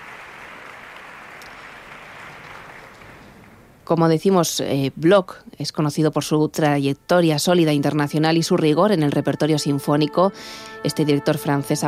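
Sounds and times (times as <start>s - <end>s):
concert audience applause: 0.0s - 3.6s
speech: 3.9s - 11.8s.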